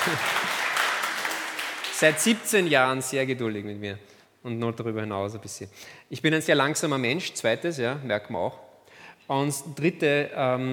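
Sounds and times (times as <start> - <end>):
speech: 0.0 - 0.4, 2.0 - 8.6, 9.3 - 10.7
audience applause: 0.0 - 2.6.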